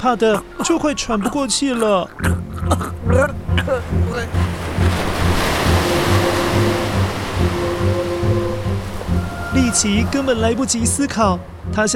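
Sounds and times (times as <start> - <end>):
speech: 0.0 - 4.5, 9.7 - 11.9
ocean waves crashing: 0.0 - 11.9
low sustained tones: 2.3 - 11.8.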